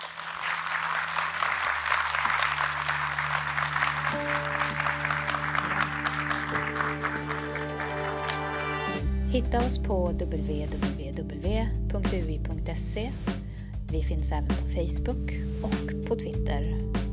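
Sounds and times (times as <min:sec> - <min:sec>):
crowd applauding: 0:00.0 - 0:09.0
speech: 0:09.3 - 0:17.0.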